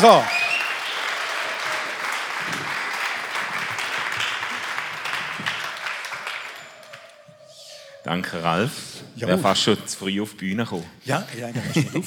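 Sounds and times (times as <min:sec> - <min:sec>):
speech: 0:00.0 - 0:00.4, 0:08.1 - 0:12.0
audience applause: 0:00.0 - 0:07.3
laughter: 0:11.3 - 0:12.0.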